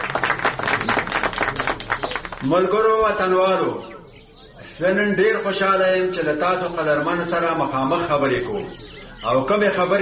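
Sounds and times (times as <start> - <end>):
audience clapping in honour of a speaker: 0.0 - 2.6
speech: 2.4 - 3.9, 4.7 - 10.0.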